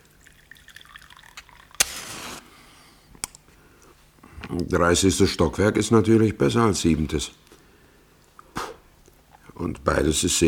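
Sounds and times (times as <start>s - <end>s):
water poured into a glass: 0.0s - 2.2s
speech: 4.5s - 7.5s, 10.0s - 10.4s.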